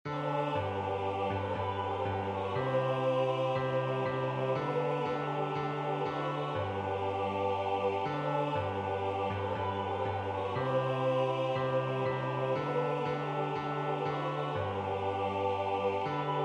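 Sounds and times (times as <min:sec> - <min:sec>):
bass: 0:00.2 - 0:16.3.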